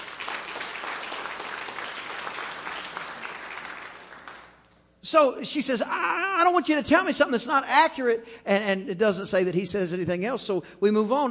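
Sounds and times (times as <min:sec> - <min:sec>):
audience clapping hands: 0:00.0 - 0:04.9
speech: 0:05.0 - 0:11.2.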